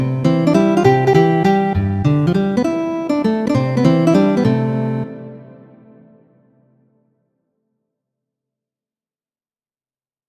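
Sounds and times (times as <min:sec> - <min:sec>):
guitar waltzes: 0:00.0 - 0:06.5.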